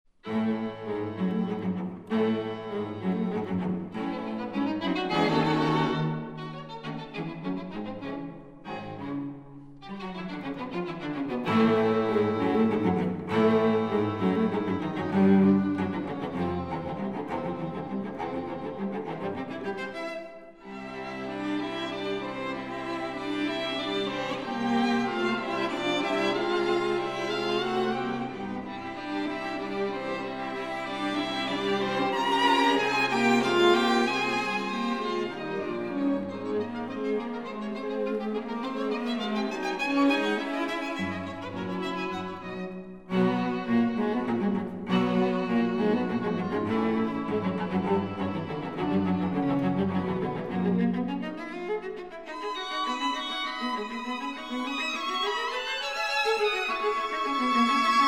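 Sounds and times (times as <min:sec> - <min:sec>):
string quintet playing: 0:00.2 - 0:58.0.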